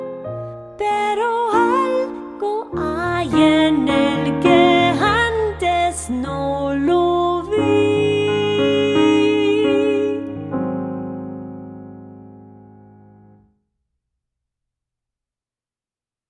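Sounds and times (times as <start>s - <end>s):
songs in Spanish: 0.4s - 11.4s.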